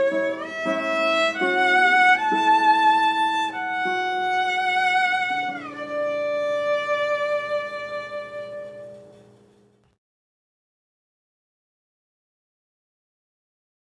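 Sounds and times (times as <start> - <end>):
guitar: 0.0 - 10.0.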